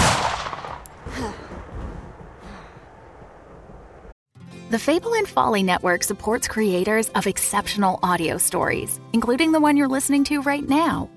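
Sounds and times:
pistol gunshot in a dramatized story: 0:00.0 - 0:00.9
speech: 0:04.7 - 0:11.1.

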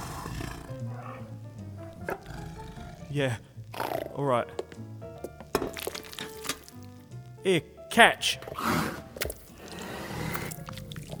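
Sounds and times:
big cat purring: 0:00.0 - 0:05.5, 0:08.4 - 0:11.1
speech: 0:03.1 - 0:04.9, 0:07.4 - 0:09.0.

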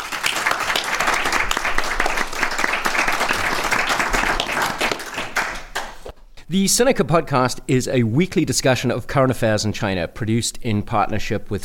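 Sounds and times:
audience applause: 0:00.0 - 0:06.1
speech: 0:06.5 - 0:11.6.

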